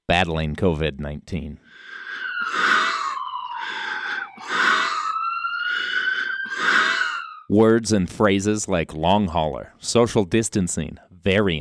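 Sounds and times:
speech: 0.1 - 1.9, 7.5 - 11.5
ventilator breathing: 1.6 - 7.4.

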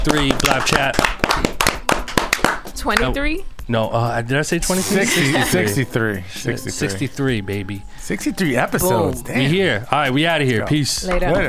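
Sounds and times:
speech: 0.0 - 1.6, 2.8 - 11.4
clapping: 0.0 - 3.1.

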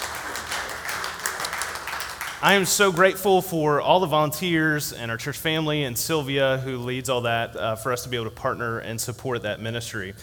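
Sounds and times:
audience applause: 0.0 - 3.2
speech: 2.4 - 10.2.

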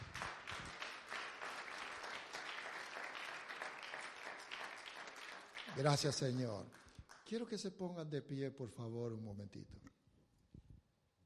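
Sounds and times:
audience applause: 0.0 - 7.2
speech: 5.8 - 9.8.

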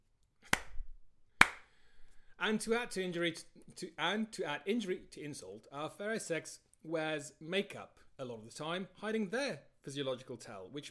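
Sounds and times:
slow hand claps: 0.4 - 0.8, 1.4 - 1.7
speech: 2.4 - 10.8.

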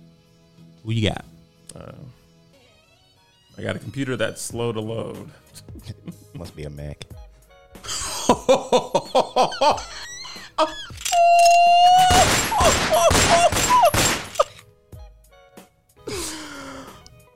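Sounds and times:
speech: 0.8 - 2.2, 3.6 - 7.1, 8.3 - 11.0
laughter: 7.9 - 10.9, 12.5 - 14.6
gunfire sound effect: 12.1 - 14.5.

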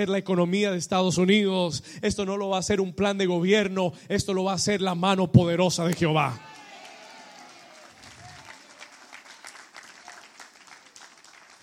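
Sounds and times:
speech: 0.0 - 6.6
church audience applauding: 6.4 - 11.6.

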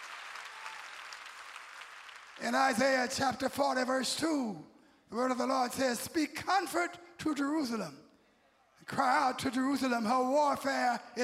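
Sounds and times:
audience clapping hands: 0.0 - 3.0
speech: 2.4 - 8.0, 8.8 - 11.2.

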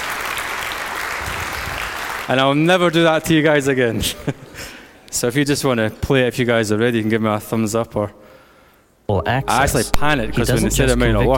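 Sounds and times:
crowd applauding: 0.0 - 2.4
speech: 2.3 - 8.2, 9.1 - 11.3.

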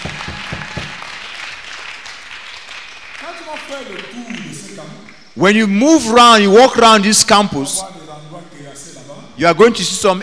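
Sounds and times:
congregation clapping at a church fasting-service gathering: 0.0 - 5.3
speech: 3.4 - 8.0, 9.4 - 10.2.

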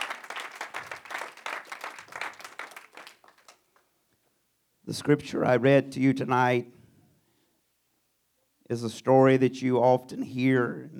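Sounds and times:
audience clapping hands in praise: 0.0 - 3.9
speech: 4.9 - 6.8, 8.7 - 10.9.

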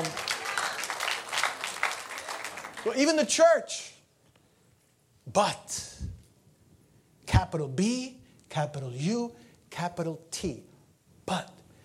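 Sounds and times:
audience clapping hands: 0.0 - 3.4
speech: 2.8 - 3.9, 5.3 - 5.9, 7.4 - 10.7, 11.3 - 11.6.

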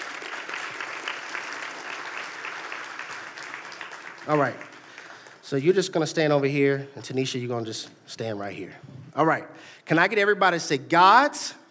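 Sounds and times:
audience applause for volunteers: 0.0 - 5.8
speech: 4.2 - 4.7, 5.5 - 11.6.

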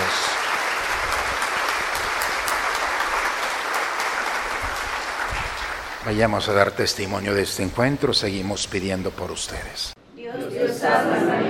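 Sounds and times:
audience applauding to welcome children: 0.0 - 6.8
speech: 6.0 - 10.0, 10.6 - 11.4.

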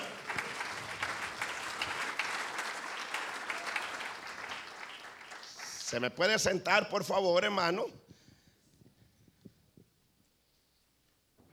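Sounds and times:
audience applause: 0.0 - 6.1
speech: 5.9 - 8.0.

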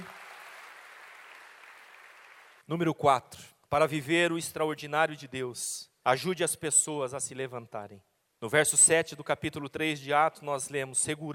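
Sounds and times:
audience applause: 0.0 - 2.6
speech: 2.7 - 11.3.

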